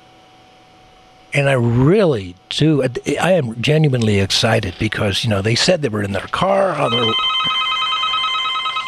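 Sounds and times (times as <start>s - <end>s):
speech: 1.3s - 7.6s
telephone ringing for incoming call: 6.3s - 8.8s.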